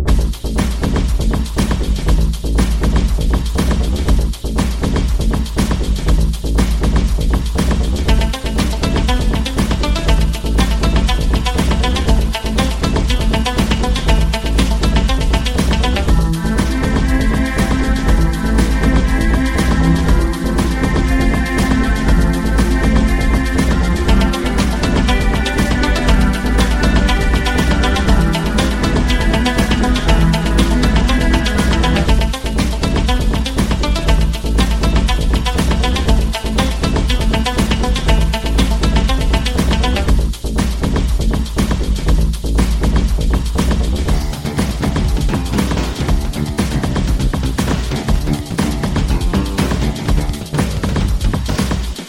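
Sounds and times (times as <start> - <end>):
dance music: 0.1 - 52.0.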